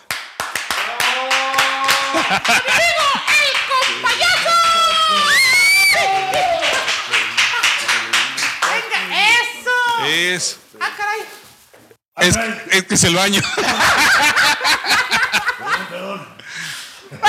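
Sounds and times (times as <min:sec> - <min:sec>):
audience applause and cheering: 0:00.0 - 0:09.1
laughter: 0:00.8 - 0:08.4, 0:13.2 - 0:17.2
speech: 0:02.2 - 0:03.3, 0:10.4 - 0:11.4, 0:12.2 - 0:14.3.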